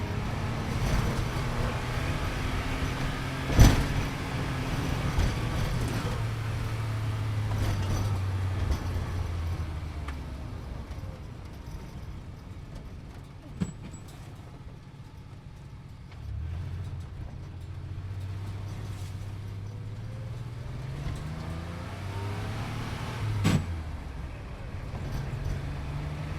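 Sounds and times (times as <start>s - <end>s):
sports car speeding: 0.0s - 11.0s, 16.3s - 26.3s.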